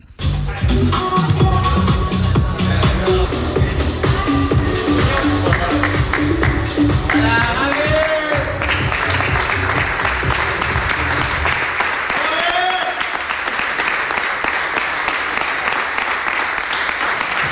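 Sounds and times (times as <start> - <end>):
music with steady beat in locker room: 0.0 - 11.7
crowd applause and cheering in locker room: 5.0 - 17.5.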